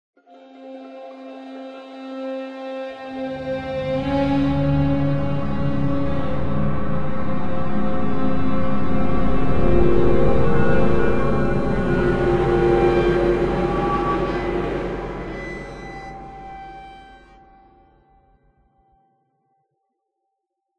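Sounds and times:
short tension music: 3.3 - 18.1.

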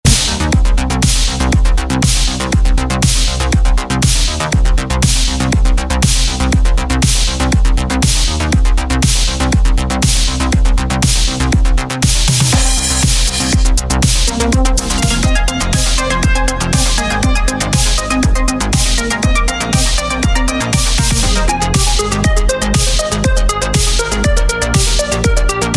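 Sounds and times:
dub music: 0.0 - 25.7.

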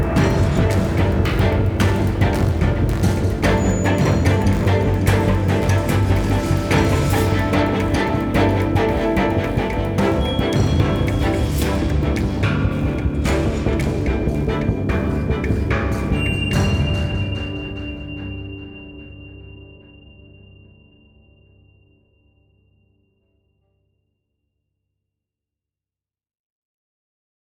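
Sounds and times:
action loop: 0.0 - 17.3.

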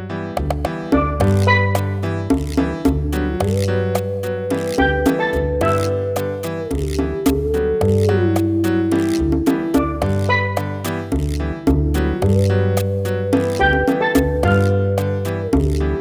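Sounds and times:
bongo cha-cha music: 0.4 - 16.0.

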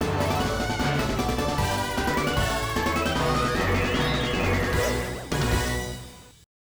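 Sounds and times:
stage clear game background music: 0.0 - 6.3.

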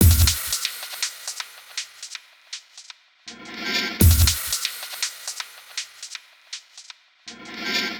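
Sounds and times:
percussion loop: 0.0 - 7.9.

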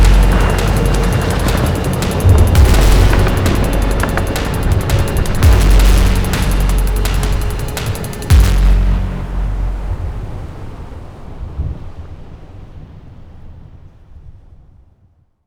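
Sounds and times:
naval loading music: 0.0 - 10.9.

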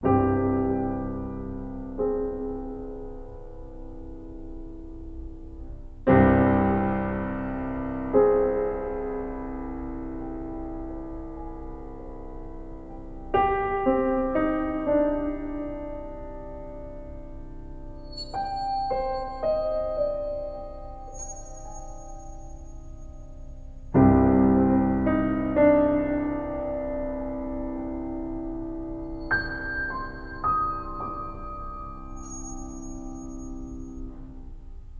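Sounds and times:
piano: 0.0 - 34.9.

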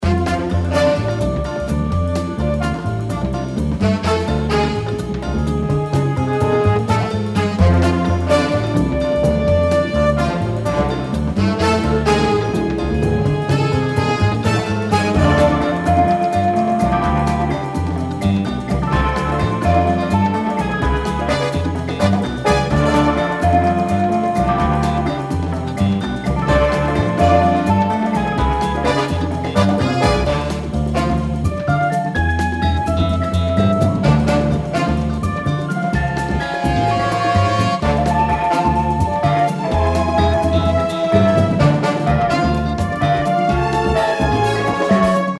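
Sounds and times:
game boss music: 0.0 - 45.3.

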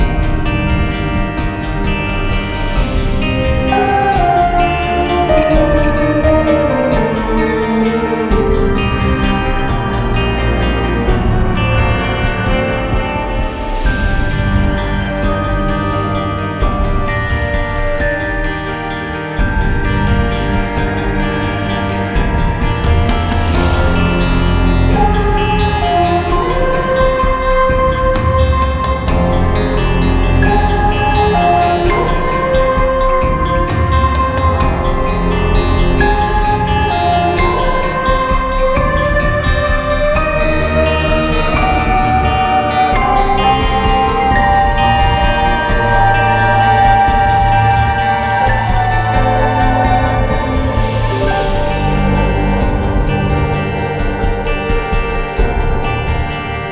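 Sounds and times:
light music loop: 0.0 - 56.7.

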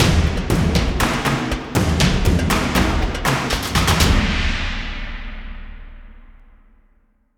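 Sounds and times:
combat music outro: 0.0 - 5.1.

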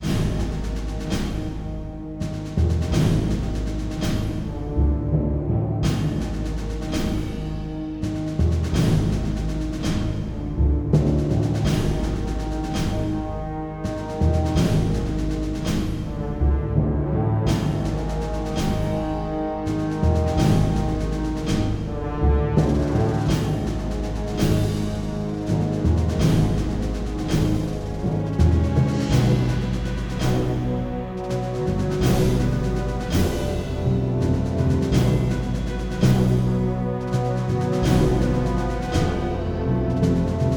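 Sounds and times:
military suspense music: 0.0 - 40.5.

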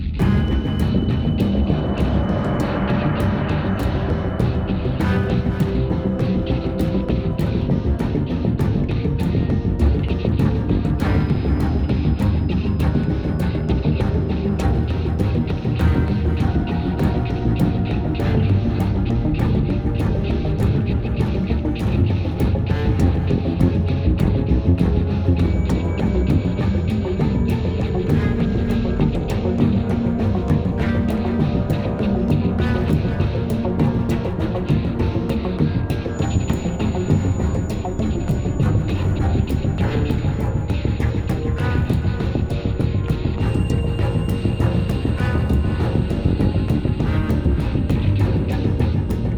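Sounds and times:
action loop: 0.2 - 49.3.

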